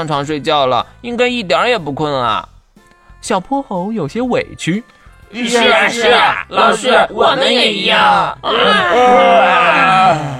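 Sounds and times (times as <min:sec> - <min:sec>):
speech: 0:00.0 - 0:02.5, 0:03.2 - 0:10.3
person yawning: 0:09.8 - 0:10.3.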